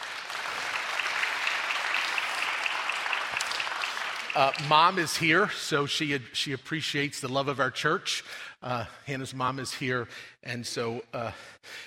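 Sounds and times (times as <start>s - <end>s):
church audience applauding: 0.0s - 5.4s
speech: 4.4s - 11.8s.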